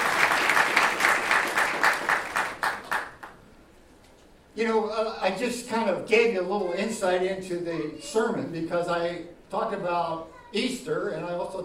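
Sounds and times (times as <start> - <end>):
church audience at an Easter service applauding to welcome a guest: 0.0 - 3.4
speech: 4.6 - 11.6.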